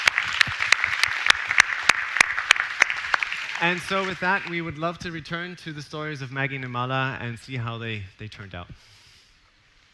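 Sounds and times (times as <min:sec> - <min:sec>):
round of applause: 0:00.0 - 0:04.6
speech: 0:03.6 - 0:09.0.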